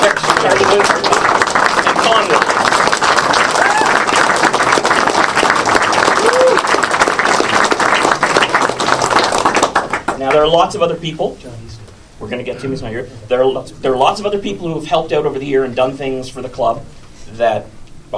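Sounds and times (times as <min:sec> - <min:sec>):
audience round of applause: 0:00.0 - 0:10.4
speech: 0:10.3 - 0:18.1.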